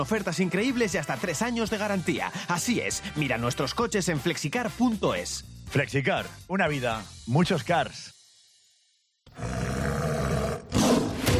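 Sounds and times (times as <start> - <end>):
speech: 0.0 - 8.1
big cat roaring: 9.3 - 11.3.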